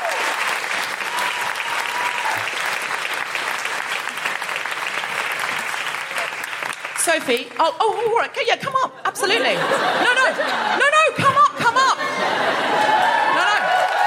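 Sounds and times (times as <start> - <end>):
crowd applauding: 0.0 - 8.2, 12.1 - 14.0
speech: 7.1 - 11.0
laughter: 9.1 - 14.0.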